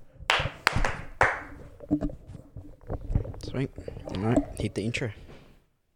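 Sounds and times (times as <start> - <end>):
single hand clap: 0.3 - 1.5
speech: 1.9 - 2.2, 3.6 - 5.2.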